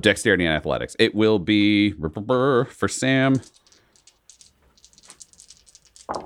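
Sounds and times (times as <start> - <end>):
speech: 0.0 - 3.6
dice rattling: 3.3 - 6.2.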